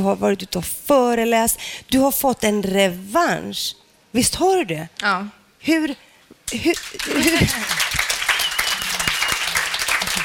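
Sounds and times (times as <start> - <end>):
speech: 0.0 - 7.9
audience applause: 6.8 - 10.2.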